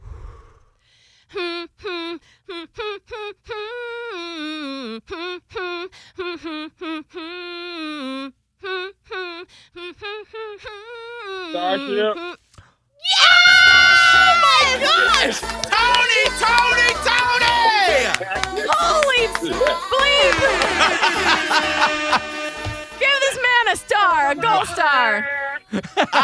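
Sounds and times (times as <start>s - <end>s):
person humming a song melody: 1.3s - 12.4s, 18.2s - 23.1s
speech: 11.5s - 12.3s
laughter: 13.6s - 23.7s, 24.3s - 26.2s.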